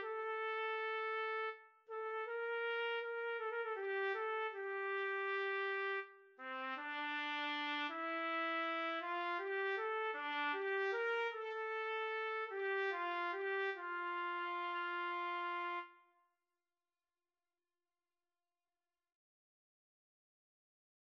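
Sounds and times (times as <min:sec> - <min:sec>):
trumpet duet: 0:00.0 - 0:16.0.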